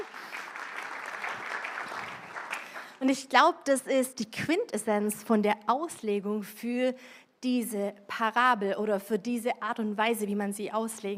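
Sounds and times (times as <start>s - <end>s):
audience applause: 0.0s - 3.0s
speech: 3.0s - 11.1s.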